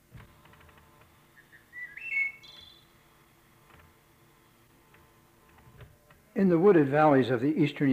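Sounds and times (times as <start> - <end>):
wood thrush singing flute-like notes: 1.4 - 2.9
speech: 6.4 - 7.9.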